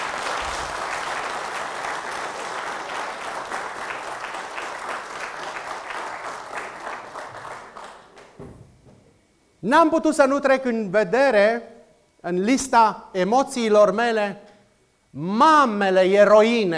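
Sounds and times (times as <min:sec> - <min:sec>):
crowd of men applauding in a church: 0:00.0 - 0:08.6
speech: 0:09.6 - 0:14.4, 0:15.1 - 0:16.7.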